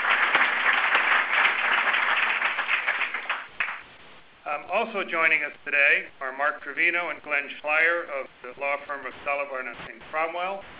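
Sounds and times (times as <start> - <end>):
audience applause: 0.0 - 3.8
speech: 4.8 - 10.7.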